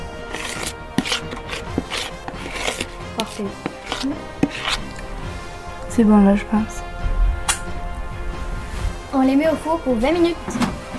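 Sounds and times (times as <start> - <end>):
knife cutting strawberries to fill muffins: 0.0 - 5.1
speech: 3.4 - 4.4, 6.0 - 6.8, 9.2 - 10.6.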